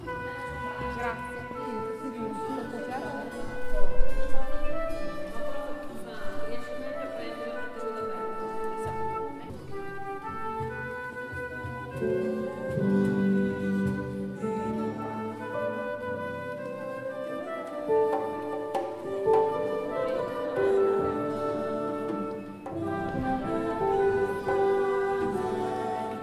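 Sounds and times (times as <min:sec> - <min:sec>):
flute: 0:00.0 - 0:26.2.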